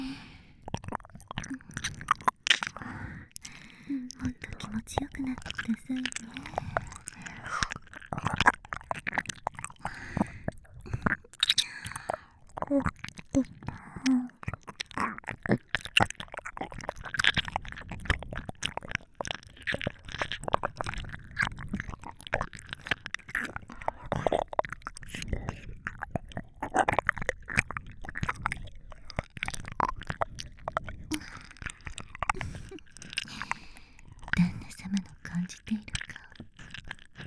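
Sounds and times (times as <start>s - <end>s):
ear licking on binaural microphone: 0.0s - 37.2s
binaural microphone whispering in both ears: 3.8s - 7.5s, 34.3s - 36.4s.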